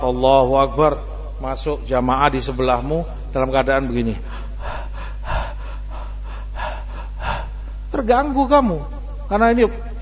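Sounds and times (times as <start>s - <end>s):
speech: 0.0s - 4.3s, 8.0s - 9.9s
person imitating heavy breathless panting: 4.2s - 7.9s.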